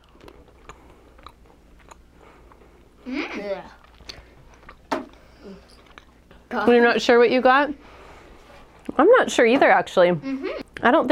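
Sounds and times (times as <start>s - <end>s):
wet mouth clicks: 0.0s - 2.6s
chewing a tutti frutti flavoured Bean Boozled jelly bean: 0.0s - 6.5s
speech: 3.1s - 3.8s, 6.5s - 8.0s, 9.0s - 11.0s.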